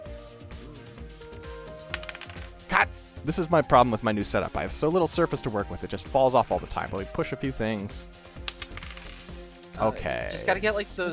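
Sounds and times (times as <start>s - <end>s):
music: 0.0s - 11.1s
die rolled on a small table: 2.0s - 2.5s, 8.5s - 9.3s
speech: 2.7s - 8.3s, 9.8s - 11.1s.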